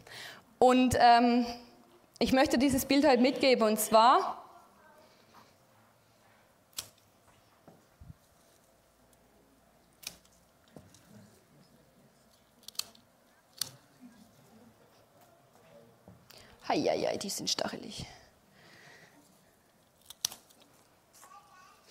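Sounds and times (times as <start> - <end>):
faint steady hiss: 0.0 - 21.9
speech: 0.6 - 1.6, 2.2 - 4.4, 16.7 - 18.2
garden shears cutting back a thorny wild rose bush in a flower bed: 6.7 - 7.0, 10.0 - 10.4, 12.6 - 13.8, 20.0 - 20.7.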